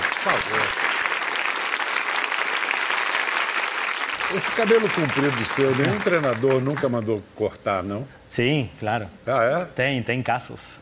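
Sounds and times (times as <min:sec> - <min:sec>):
audience applause: 0:00.0 - 0:07.0
speech: 0:00.2 - 0:00.9, 0:04.3 - 0:10.8.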